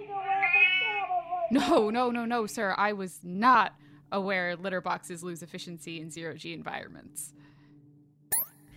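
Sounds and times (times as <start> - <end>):
distressed cats meowing: 0.2 - 1.2
speech: 1.5 - 7.4.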